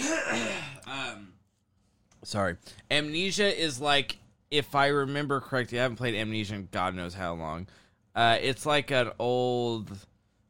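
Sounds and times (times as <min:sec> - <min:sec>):
person clearing throat: 0:00.0 - 0:01.3
speech: 0:02.2 - 0:10.1.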